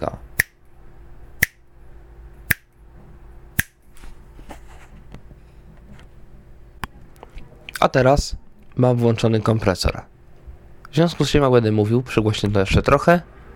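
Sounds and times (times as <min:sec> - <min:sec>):
speech: 0:00.0 - 0:00.3, 0:07.8 - 0:10.1, 0:10.9 - 0:13.3
low hum: 0:00.0 - 0:13.5
finger snaps: 0:01.4 - 0:01.6, 0:02.5 - 0:02.7, 0:03.6 - 0:03.8.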